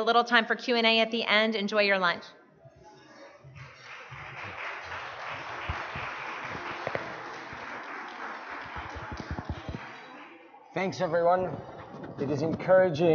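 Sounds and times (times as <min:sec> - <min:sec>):
speech: 0:00.0 - 0:02.4, 0:10.8 - 0:13.1
audience applause: 0:03.5 - 0:10.4.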